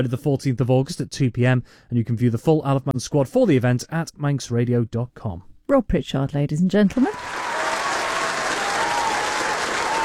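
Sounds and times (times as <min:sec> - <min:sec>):
speech: 0:00.0 - 0:07.4
crowd applause: 0:07.1 - 0:10.0.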